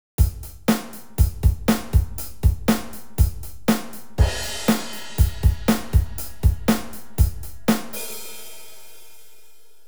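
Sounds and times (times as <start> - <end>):
drum: 0.2 - 9.3.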